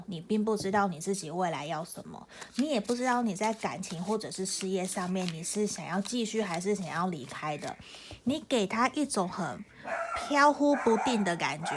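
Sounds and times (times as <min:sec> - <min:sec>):
speech: 0:00.1 - 0:11.7
small dog barking: 0:09.9 - 0:11.7.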